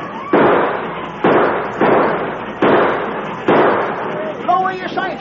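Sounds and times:
gunshots sound effect: 0:00.1 - 0:05.1.

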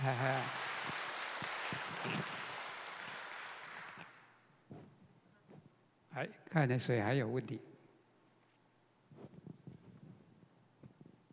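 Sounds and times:
speech: 0:00.0 - 0:01.0, 0:02.0 - 0:02.4, 0:06.2 - 0:07.7
audience clapping: 0:00.0 - 0:04.5.

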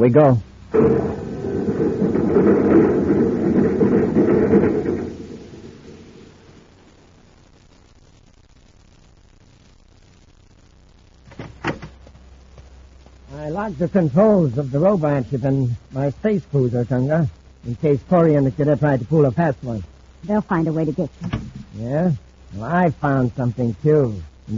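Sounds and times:
speech: 0:00.0 - 0:01.1, 0:13.7 - 0:24.5
sliding door rumbling shut: 0:00.7 - 0:06.6, 0:21.2 - 0:21.6.

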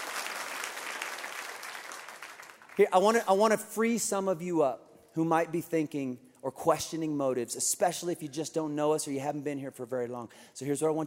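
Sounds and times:
audience applause: 0:00.0 - 0:02.8
speech: 0:02.8 - 0:11.0.

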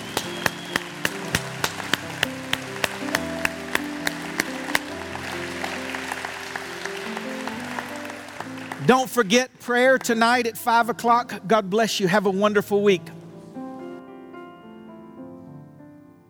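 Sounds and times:
audience clapping: 0:00.0 - 0:09.3
speech: 0:08.8 - 0:13.2.

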